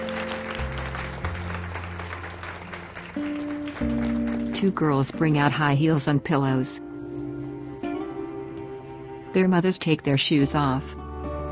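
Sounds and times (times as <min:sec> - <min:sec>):
crowd applauding: 0:00.0 - 0:05.2
speech: 0:04.6 - 0:06.8, 0:09.4 - 0:11.0.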